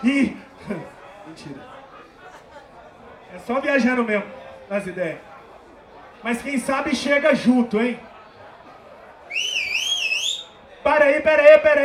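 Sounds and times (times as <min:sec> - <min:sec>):
speech: 0:00.0 - 0:01.8, 0:03.3 - 0:05.3, 0:06.2 - 0:08.1, 0:10.9 - 0:11.8
laughter: 0:00.0 - 0:03.9
crowd murmur: 0:00.0 - 0:11.8
audience member whistling: 0:09.3 - 0:10.6.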